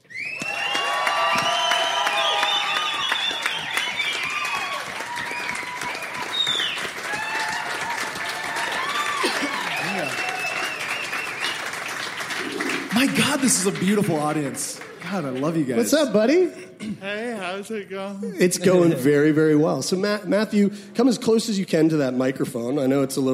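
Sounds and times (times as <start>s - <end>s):
audience in Calgary cheering and whooping: 0.0s - 13.5s
audience in Calgary applauding a new guest: 0.0s - 16.1s
speech: 13.4s - 23.3s.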